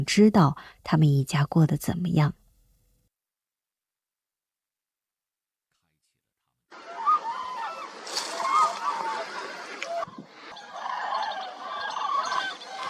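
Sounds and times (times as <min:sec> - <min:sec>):
speech: 0:00.0 - 0:02.4
large flock of cranes calling at wintering ground on Niyang River, Nyingchi, Tibet: 0:06.7 - 0:12.8
watery splashing background: 0:06.7 - 0:12.8.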